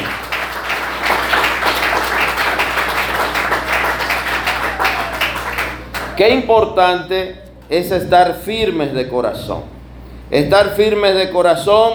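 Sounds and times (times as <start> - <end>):
audience applause: 0.0 - 6.3
speech: 6.2 - 9.7, 10.3 - 11.9.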